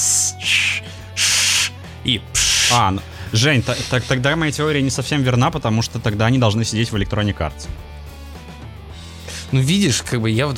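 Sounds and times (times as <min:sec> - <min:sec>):
voice imitating a snake's hiss: 0:00.0 - 0:04.4
speech: 0:02.0 - 0:07.9, 0:09.5 - 0:10.5.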